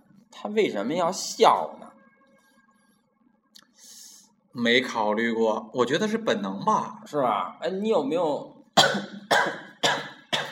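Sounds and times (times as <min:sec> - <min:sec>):
speech: 0:00.4 - 0:01.9, 0:04.6 - 0:09.6
person coughing: 0:08.8 - 0:10.5.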